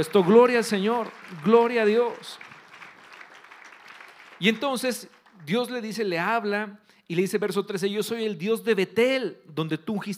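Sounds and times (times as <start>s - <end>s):
speech: 0.0s - 2.5s, 4.4s - 10.1s
audience applause: 0.0s - 6.0s.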